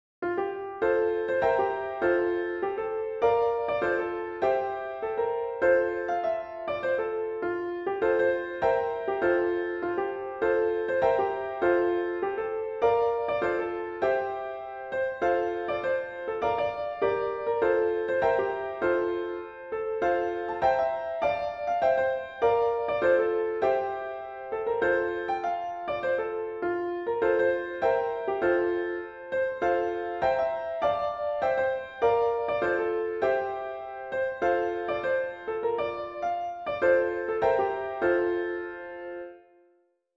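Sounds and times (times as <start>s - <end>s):
melody and chords: 0.3s - 39.6s.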